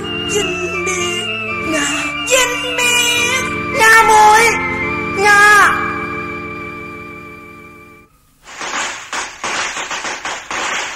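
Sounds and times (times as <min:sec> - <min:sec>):
steady droning musical tone: 0:00.0 - 0:08.2
speech: 0:00.3 - 0:01.0
wedding firecrackers bursting: 0:08.4 - 0:10.9.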